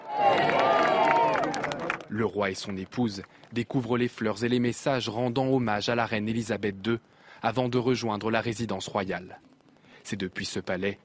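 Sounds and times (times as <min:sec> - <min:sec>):
large outdoor crowd applauding and cheering outside the palace: 0:00.0 - 0:03.6
speech: 0:02.1 - 0:11.0.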